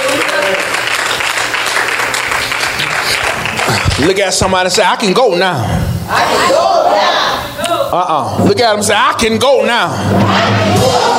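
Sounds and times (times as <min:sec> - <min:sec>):
audience clapping: 0:00.0 - 0:04.5
speech: 0:04.0 - 0:11.1.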